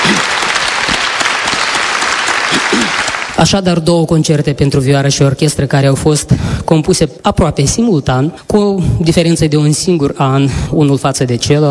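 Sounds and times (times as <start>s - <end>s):
audience applause: 0.0s - 3.4s
speech: 3.4s - 11.6s.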